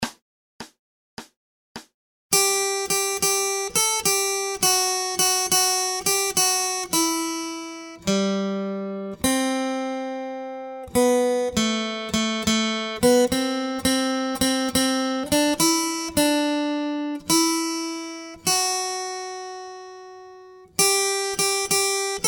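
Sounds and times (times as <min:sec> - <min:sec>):
acoustic guitar accompaniment: 0:02.3 - 0:22.2.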